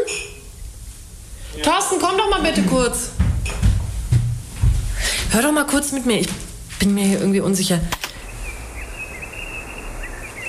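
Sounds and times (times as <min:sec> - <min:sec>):
woodland ambience with soft rushing hiss and low rumble: 0:00.0 - 0:10.4
speech: 0:01.6 - 0:03.2, 0:05.3 - 0:08.0
thin high bird chirps and trills: 0:08.1 - 0:10.4.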